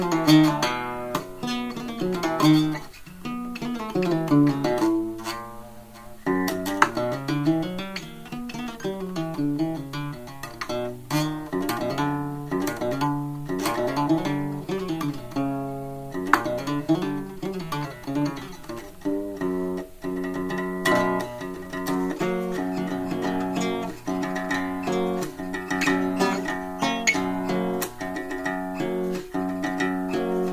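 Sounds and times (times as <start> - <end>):
blue guitar Spanish house music: 0.0 - 30.5.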